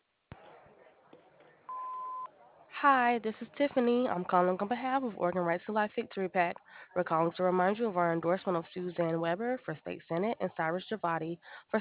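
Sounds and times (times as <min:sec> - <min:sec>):
low noise: 0:00.0 - 0:11.7
answering machine recording beep: 0:01.7 - 0:02.3
speech: 0:02.8 - 0:11.7.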